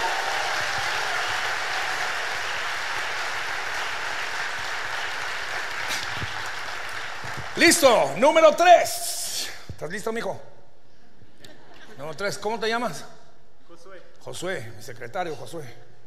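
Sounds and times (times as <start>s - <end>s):
audience applauding: 0.0s - 8.2s
speech: 7.6s - 9.1s, 9.8s - 10.6s, 12.0s - 13.2s, 14.3s - 15.9s.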